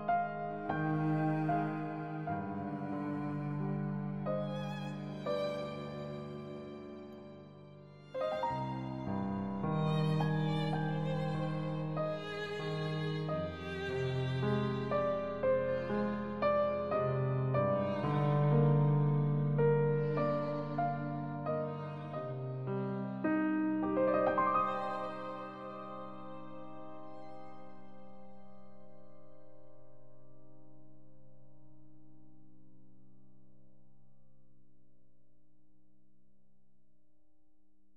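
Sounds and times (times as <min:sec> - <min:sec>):
violin: 0:00.0 - 0:29.2
cello: 0:00.0 - 0:30.1
piano: 0:00.0 - 0:34.0.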